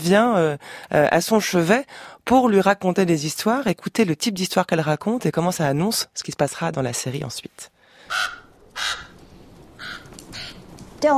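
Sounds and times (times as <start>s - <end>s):
speech: 0.0s - 9.0s, 11.0s - 11.1s
crow cawing: 8.0s - 10.7s.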